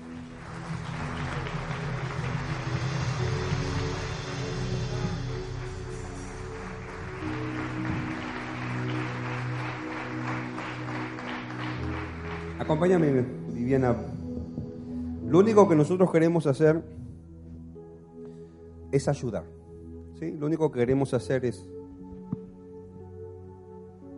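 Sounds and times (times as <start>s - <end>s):
audience applauding: 0.0s - 13.5s
instruments playing sustained musical tones: 0.0s - 16.3s
speech: 12.7s - 14.1s, 15.3s - 17.0s, 18.9s - 19.6s, 20.2s - 21.8s.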